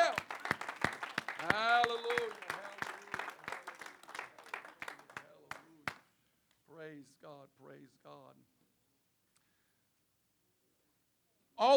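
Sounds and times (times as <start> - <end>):
audience clapping: 0.0 - 6.0.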